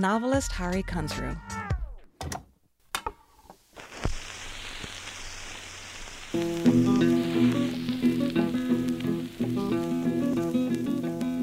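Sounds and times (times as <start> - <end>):
speech: 0.0 - 1.6
crackle of a worn old 78 record: 3.1 - 11.4.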